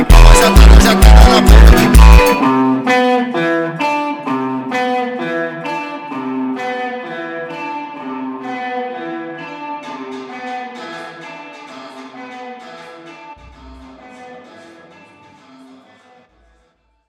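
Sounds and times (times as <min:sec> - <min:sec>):
funk music: 0:00.0 - 0:12.2.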